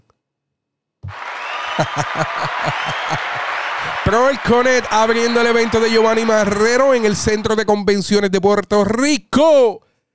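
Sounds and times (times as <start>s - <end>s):
applause: 1.0s - 7.8s
laughter: 1.1s - 7.4s
speech: 2.0s - 3.2s, 4.1s - 9.9s.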